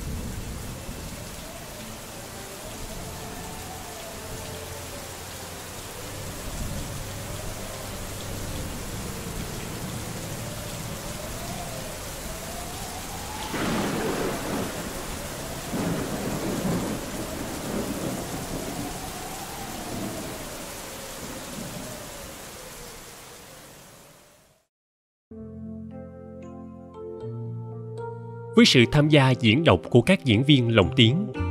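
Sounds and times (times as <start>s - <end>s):
heavy rain: 0.0s - 24.7s
thunder cracking and rumbling: 11.0s - 22.0s
speech: 28.6s - 31.4s.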